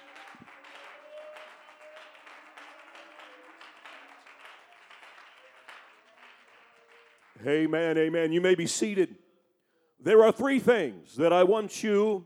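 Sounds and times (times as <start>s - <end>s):
audience applauding: 0.0s - 8.5s
speech: 7.4s - 9.2s, 10.0s - 12.2s.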